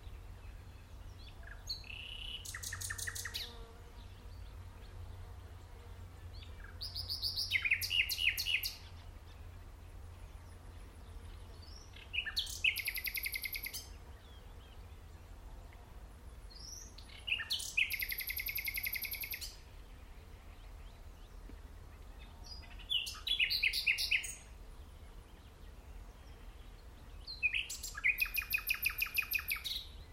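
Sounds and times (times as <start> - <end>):
common nightingale singing: 1.1 - 3.6, 6.5 - 9.0, 11.6 - 13.9, 16.5 - 19.7, 22.0 - 25.0, 26.4 - 30.1.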